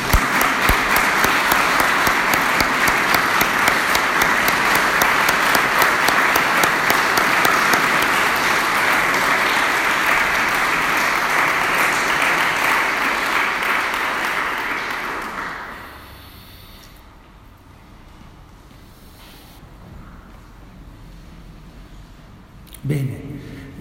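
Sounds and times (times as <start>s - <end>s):
audience applause: 0.0s - 16.2s.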